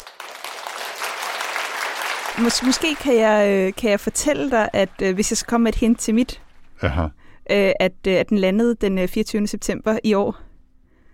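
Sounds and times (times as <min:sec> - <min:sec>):
applause sound effect added in post: 0:00.0 - 0:06.7
speech: 0:02.4 - 0:10.4.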